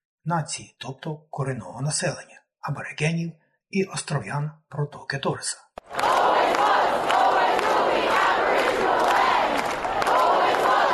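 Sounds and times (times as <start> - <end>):
speech: 0.2 - 6.7
protest crowd chanting in unison: 5.8 - 10.9.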